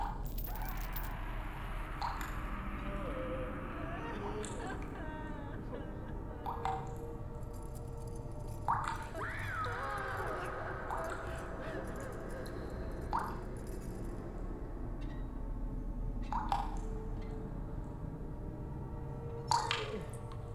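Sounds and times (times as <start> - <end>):
oubliette ambience: 0.0 - 20.5
laughter: 2.8 - 7.5, 9.0 - 14.1.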